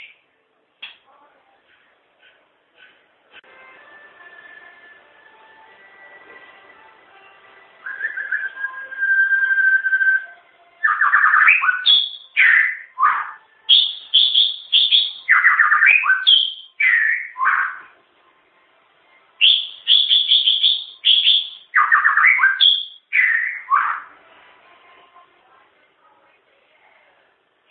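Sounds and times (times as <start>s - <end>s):
White-rumped shama singing: 3.4s - 26.3s.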